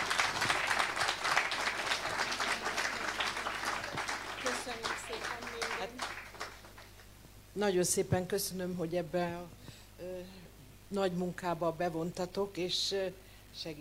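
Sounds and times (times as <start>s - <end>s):
audience applause: 0.0s - 7.1s
speech: 7.6s - 13.7s.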